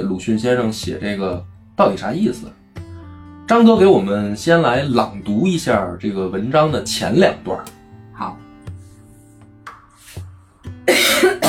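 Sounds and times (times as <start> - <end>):
speech: 0.1 - 2.6, 3.5 - 8.4
throaty coughs: 10.8 - 11.4.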